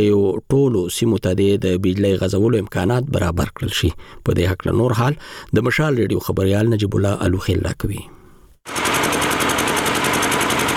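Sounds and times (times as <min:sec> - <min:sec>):
speech: 0:00.0 - 0:08.8
old electricity generator running at Yaqubi bazaar, Sabari district, Khost: 0:08.7 - 0:10.7.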